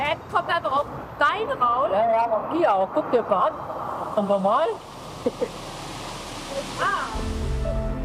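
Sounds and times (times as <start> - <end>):
speech: 0.1 - 5.6
spring water rushing into a river: 3.7 - 7.9.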